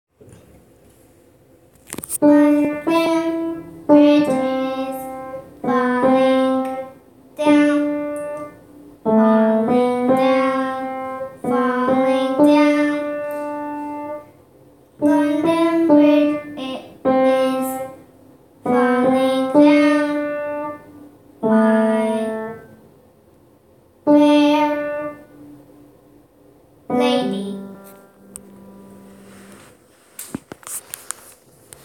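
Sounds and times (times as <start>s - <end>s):
nursery tune played on an upright piano: 2.2s - 14.4s, 15.0s - 22.9s, 24.0s - 25.8s, 26.8s - 29.7s.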